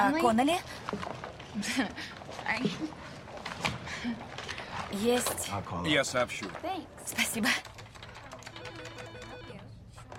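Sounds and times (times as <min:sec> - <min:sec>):
speech: 0:00.0 - 0:03.1, 0:04.0 - 0:07.7
woman typing on a computer keyboard: 0:07.4 - 0:09.5.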